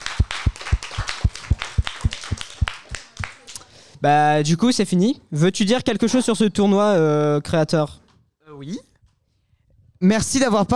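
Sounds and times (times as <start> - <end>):
audience rhythmic clapping: 0.0 - 3.7
speech: 4.0 - 8.0, 10.0 - 10.7.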